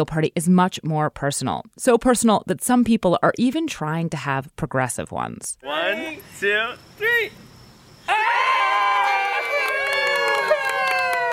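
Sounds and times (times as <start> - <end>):
speech: 0.0 - 7.5
party guests cheering at a gender reveal party: 8.1 - 11.3.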